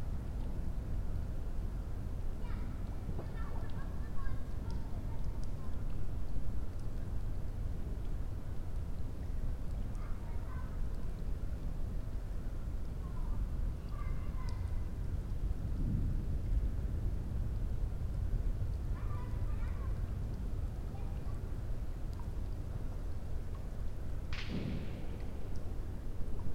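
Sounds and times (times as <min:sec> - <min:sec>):
raindrops: 0:00.0 - 0:26.5
child: 0:02.4 - 0:06.2, 0:09.7 - 0:11.3, 0:12.8 - 0:15.0, 0:18.7 - 0:22.3
campfire crackling: 0:02.7 - 0:26.5
fireworks: 0:24.4 - 0:25.4.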